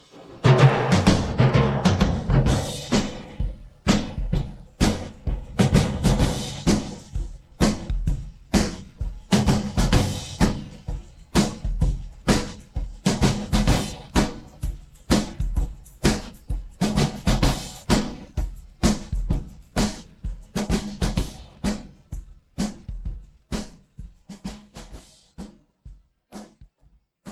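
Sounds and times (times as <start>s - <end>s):
drums: 0.0s - 27.3s.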